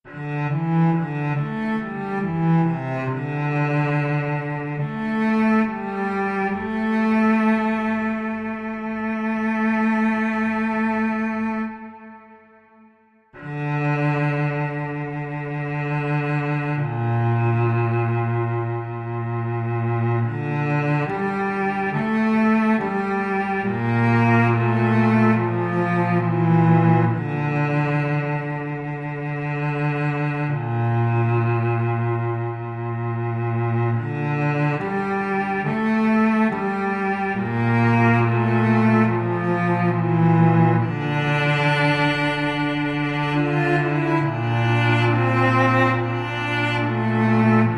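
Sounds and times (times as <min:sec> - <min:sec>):
solo cello playing: 0:00.0 - 0:47.7.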